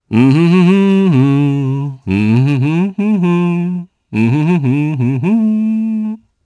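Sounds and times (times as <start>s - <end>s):
Japanese vocal humming: 0.0s - 6.2s.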